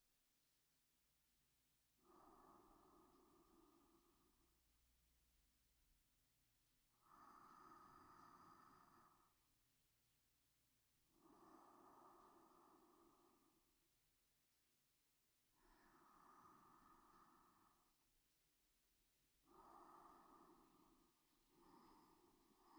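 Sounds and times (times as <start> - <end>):
sleep breathing: 2.0 - 4.9, 6.9 - 9.6, 11.0 - 13.9, 15.4 - 18.2, 19.4 - 22.7.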